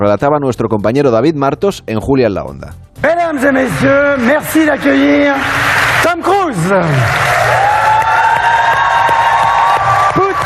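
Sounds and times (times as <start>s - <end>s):
speech: 0.0s - 7.5s
audience cheering: 3.7s - 10.4s.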